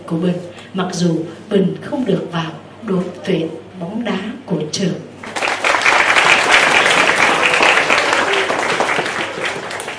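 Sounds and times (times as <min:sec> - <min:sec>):
speech: 0:00.1 - 0:05.1
group of children clapping: 0:05.2 - 0:09.9.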